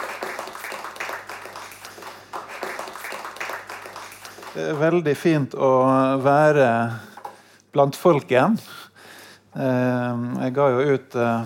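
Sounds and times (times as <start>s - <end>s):
audience applause: 0.0s - 5.2s
speech: 4.6s - 7.1s, 7.7s - 8.8s, 9.6s - 11.4s.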